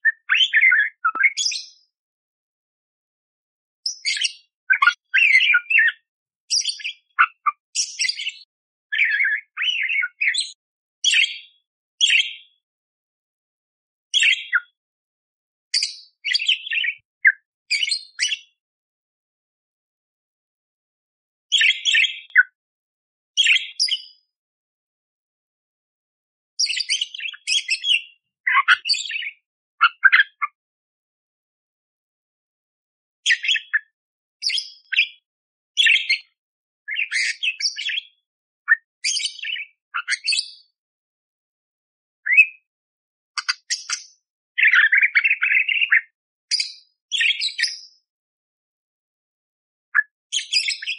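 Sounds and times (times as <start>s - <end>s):
budgerigar chattering song of squeaky chirps: 0.0s - 1.8s, 3.9s - 12.6s, 14.2s - 14.8s, 15.8s - 17.1s, 17.7s - 18.5s, 21.5s - 22.5s, 23.4s - 24.2s, 26.6s - 30.6s, 33.3s - 35.1s, 35.8s - 40.7s, 42.3s - 42.7s, 43.4s - 47.9s.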